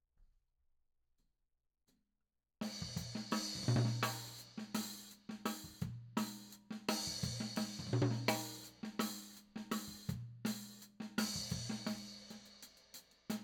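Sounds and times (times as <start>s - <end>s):
tom drum: 2.7s - 12.6s.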